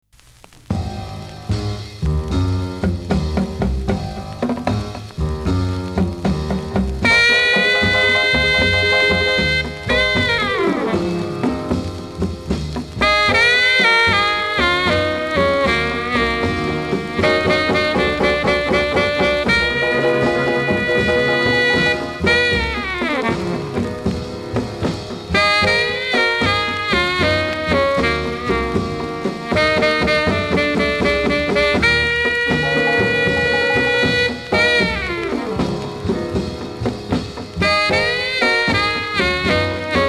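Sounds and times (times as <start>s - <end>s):
saxophone on a 78rpm record: 0.7s - 40.0s.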